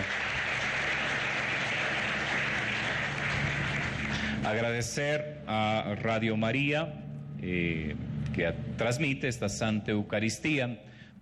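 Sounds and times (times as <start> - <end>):
applause: 0.0 - 4.7
speech: 4.5 - 11.2.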